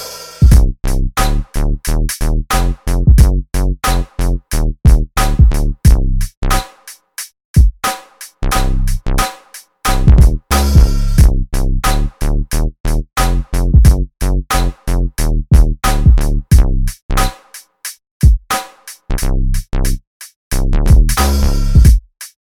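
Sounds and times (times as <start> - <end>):
bass loop: 0.5 - 6.7, 8.5 - 17.3, 19.1 - 21.9.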